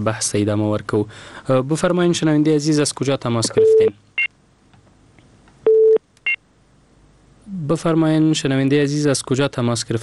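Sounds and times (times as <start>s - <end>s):
speech: 0.0s - 4.1s, 7.7s - 10.0s
telephone beeps as a caller's line on a radio call-in show is cut off: 3.6s - 3.9s, 5.7s - 6.4s.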